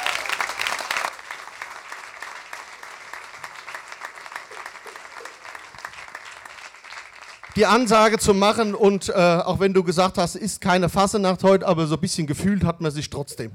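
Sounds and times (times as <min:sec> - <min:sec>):
audience applause: 0:00.0 - 0:08.2
speech: 0:07.6 - 0:13.5.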